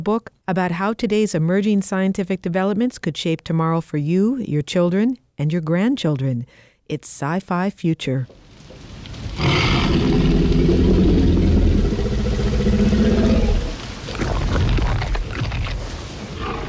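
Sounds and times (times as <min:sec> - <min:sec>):
speech: 0:00.0 - 0:08.5
menacing T-Rex growl and roar: 0:09.3 - 0:16.6.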